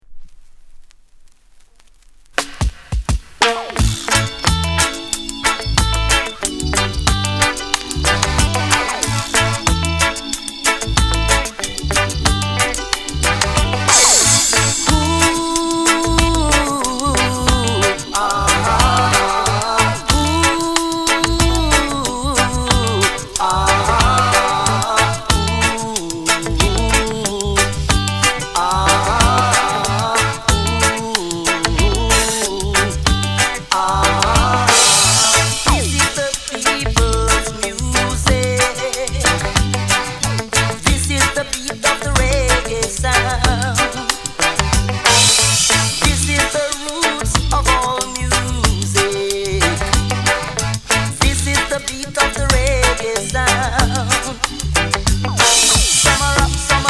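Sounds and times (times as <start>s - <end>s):
reggae music: 2.3s - 56.8s.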